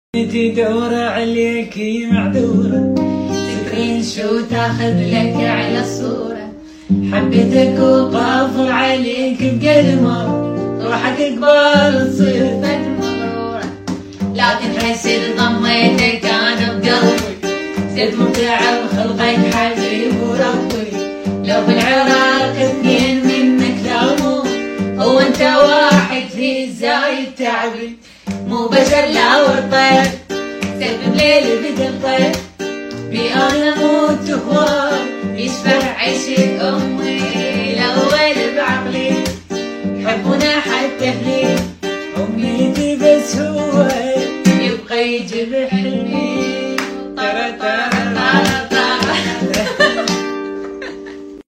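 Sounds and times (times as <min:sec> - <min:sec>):
guitar: 0:00.1 - 0:51.4
laughter: 0:48.7 - 0:51.4.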